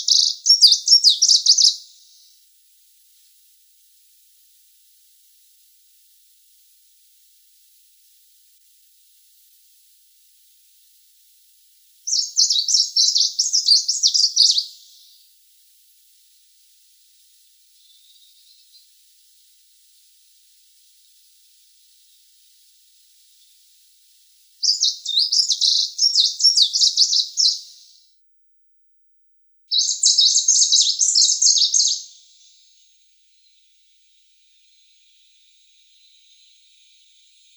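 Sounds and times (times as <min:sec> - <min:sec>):
sulphur-bellied warbler: 0:00.0 - 0:02.3, 0:12.1 - 0:15.2, 0:17.8 - 0:18.9, 0:24.6 - 0:28.0, 0:29.7 - 0:32.6.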